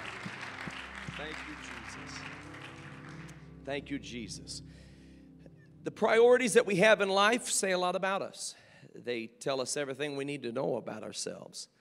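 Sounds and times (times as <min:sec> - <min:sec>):
crowd clapping: 0:00.0 - 0:03.5
speech: 0:01.2 - 0:02.6, 0:03.7 - 0:04.9, 0:05.8 - 0:11.7.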